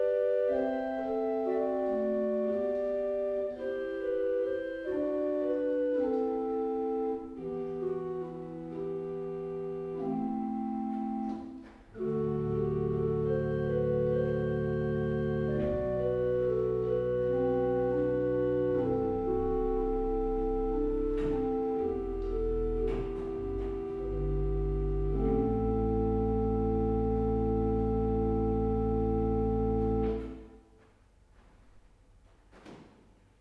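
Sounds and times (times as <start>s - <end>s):
organ playing adagio in Nieuw Balinge: 0.0s - 30.8s.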